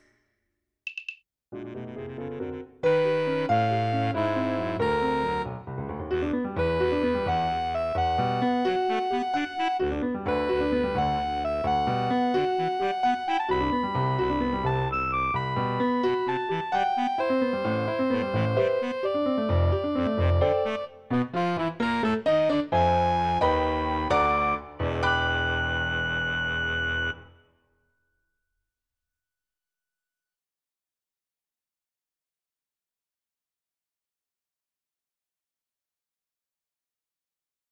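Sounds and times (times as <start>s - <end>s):
tango music: 1.6s - 27.3s.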